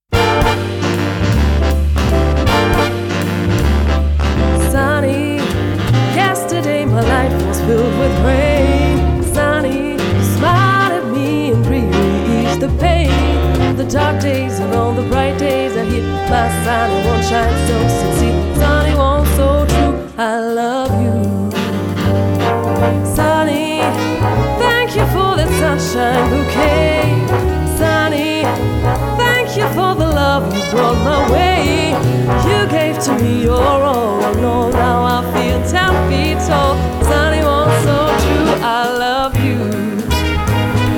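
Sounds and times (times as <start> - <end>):
sunny big band music: 0.0 - 40.9.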